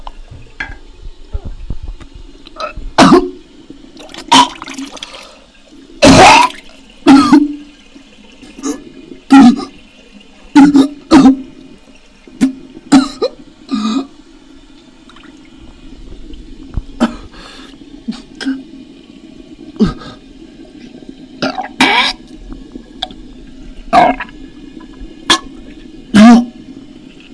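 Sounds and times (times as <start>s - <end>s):
person vomiting: 2.6s - 3.4s, 6.0s - 7.6s, 8.6s - 9.8s, 10.6s - 11.4s, 12.4s - 14.1s, 17.0s - 17.3s, 21.4s - 22.2s, 23.9s - 24.3s, 26.1s - 26.6s.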